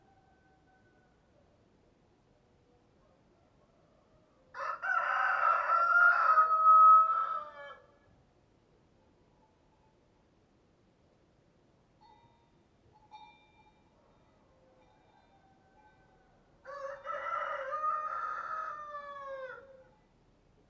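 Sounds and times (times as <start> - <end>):
rooster crowing cock-a-doodle-doo: 4.0 - 7.9, 15.3 - 19.9.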